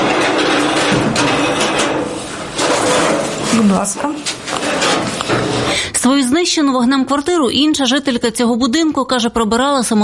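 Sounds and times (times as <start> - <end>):
fire-damaged apartment door being forced shut: 0.0 - 5.9
speech: 3.6 - 4.4, 5.8 - 10.0.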